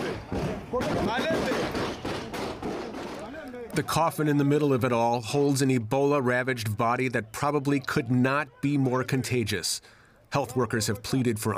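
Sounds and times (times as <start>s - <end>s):
gunfire during a riot: 0.0s - 3.4s
crowd shouting: 0.0s - 4.4s, 6.6s - 9.8s
speech: 0.7s - 1.5s, 3.8s - 11.5s.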